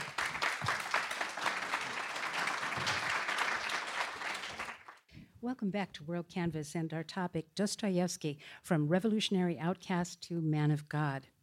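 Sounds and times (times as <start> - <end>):
audience applause: 0.0 - 5.0
speech: 5.4 - 11.3.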